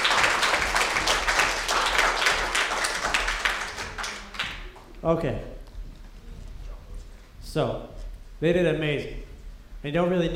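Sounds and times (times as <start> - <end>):
crowd clapping: 0.0 - 5.0
speech: 5.0 - 5.6, 7.6 - 9.2, 9.8 - 10.3.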